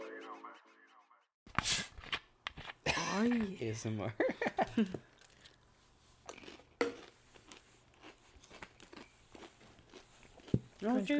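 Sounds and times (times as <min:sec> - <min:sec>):
speech: 0:03.2 - 0:05.1, 0:10.8 - 0:11.1
laughter: 0:04.1 - 0:05.0
crunching scorching wavy loaded nacho flavored Pringles chips: 0:06.2 - 0:11.1.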